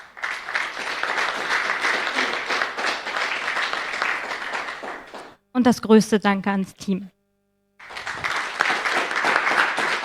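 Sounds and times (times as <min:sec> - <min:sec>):
audience applause: 0:00.0 - 0:05.4, 0:07.8 - 0:10.0
speech: 0:05.6 - 0:07.2.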